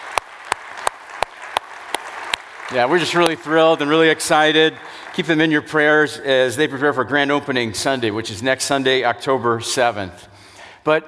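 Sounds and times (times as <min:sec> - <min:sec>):
hand claps: 0:00.0 - 0:05.5
speech: 0:02.7 - 0:11.0.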